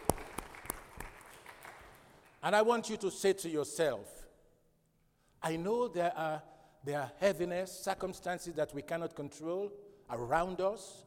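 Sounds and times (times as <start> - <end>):
sparse scattered audience clapping: 0.0 - 2.4
speech: 2.4 - 4.2, 5.4 - 11.0.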